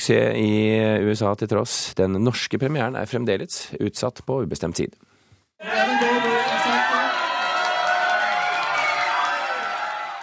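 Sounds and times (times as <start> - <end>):
speech: 0.0 - 6.3
high excited yells: 5.6 - 10.2
premiere audience cheering and shouting: 5.6 - 10.2.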